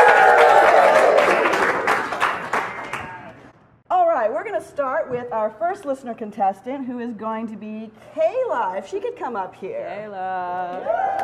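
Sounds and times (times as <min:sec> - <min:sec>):
live studio audience applause at a quiz show: 0:00.0 - 0:03.4, 0:10.8 - 0:11.2
speech: 0:05.0 - 0:11.2.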